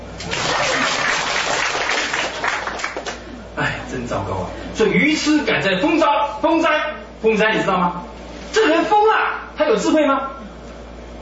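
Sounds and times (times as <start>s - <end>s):
audience applause: 0.2s - 3.2s
speech: 4.0s - 10.4s.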